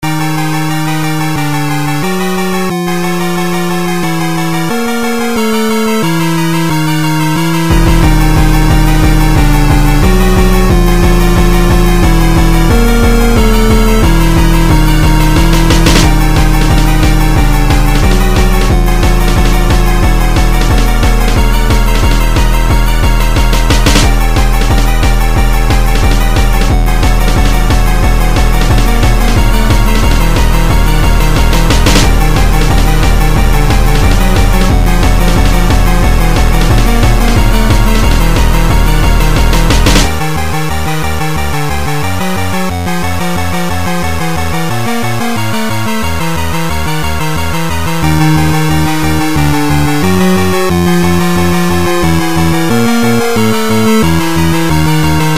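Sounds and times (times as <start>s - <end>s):
jumpstyle music: 0.0s - 55.3s.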